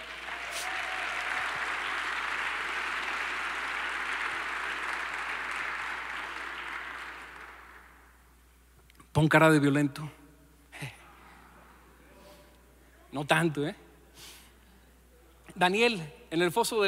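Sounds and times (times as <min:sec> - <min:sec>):
audience applauding: 0:00.0 - 0:08.2
speech: 0:09.2 - 0:10.2, 0:13.2 - 0:14.3, 0:15.6 - 0:16.8.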